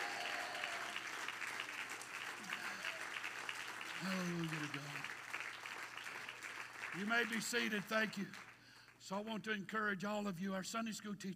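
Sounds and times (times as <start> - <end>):
audience clapping hands: 0.0 - 9.0
speech: 4.0 - 5.2, 6.9 - 11.3.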